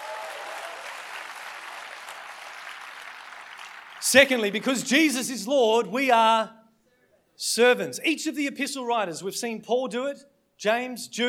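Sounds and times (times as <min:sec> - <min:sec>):
audience applause: 0:00.0 - 0:05.1
speech: 0:04.0 - 0:06.6, 0:07.4 - 0:11.2.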